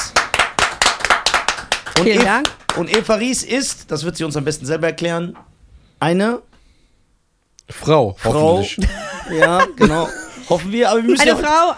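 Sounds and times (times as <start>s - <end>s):
applause: 0.0s - 3.1s
speech: 2.0s - 6.5s, 7.7s - 11.7s
laughter: 8.8s - 10.6s.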